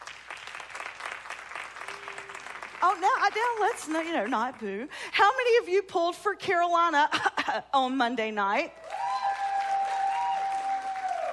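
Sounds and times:
audience clapping: 0.0s - 5.0s, 8.8s - 11.3s
speech: 2.8s - 8.8s.

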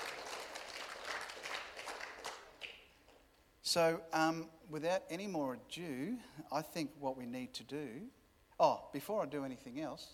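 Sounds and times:
audience applause: 0.0s - 2.9s
speech: 3.7s - 10.1s.

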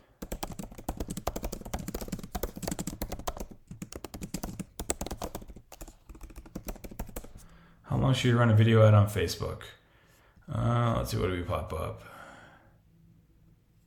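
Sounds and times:
fingers typing a search query on a computer keyboard: 0.2s - 7.6s
speech: 8.0s - 9.8s, 10.5s - 12.2s.

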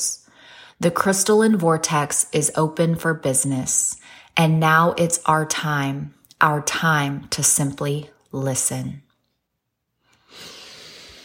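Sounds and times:
long deep breath: 0.3s - 0.8s, 10.1s - 11.2s
speech: 0.8s - 9.0s.

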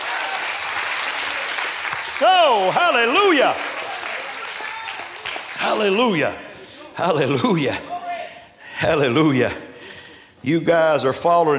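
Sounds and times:
audience clapping hands: 0.0s - 6.3s
speech: 2.2s - 3.7s, 5.7s - 6.4s, 7.0s - 7.9s, 8.8s - 9.6s, 10.4s - 11.5s.

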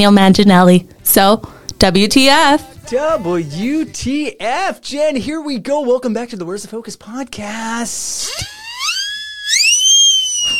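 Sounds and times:
speech: 0.0s - 8.6s
high-pitched whistly whine: 8.2s - 10.5s.

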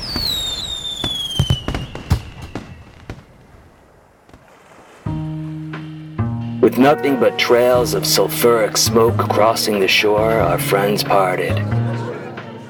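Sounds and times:
falling whistle of fireworks: 0.0s - 3.0s
fireworks bursting: 0.0s - 5.2s
speech: 6.6s - 11.8s
laughter: 6.6s - 12.6s.

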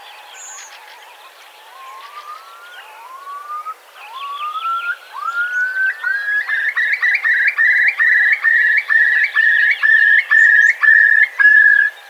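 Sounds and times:
Eurasian curlew bubbling call: 3.6s - 12.0s.

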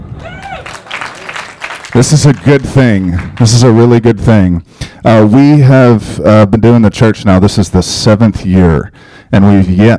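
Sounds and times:
person whooping: 0.1s - 0.8s
crowd applause: 0.1s - 3.6s
speech: 2.0s - 9.9s.

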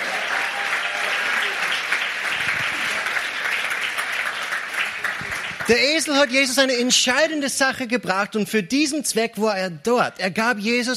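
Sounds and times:
audience applause: 0.0s - 6.7s
speech: 5.7s - 10.9s.

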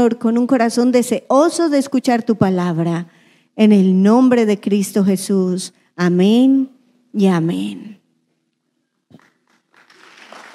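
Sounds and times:
speech: 0.0s - 8.0s
applause: 9.1s - 10.5s.

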